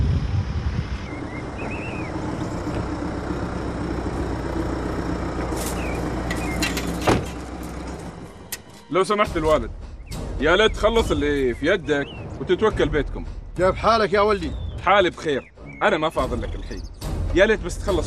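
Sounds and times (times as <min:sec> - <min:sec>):
bulldozer engine running: 0:00.2 - 0:08.8
speech: 0:09.0 - 0:18.0.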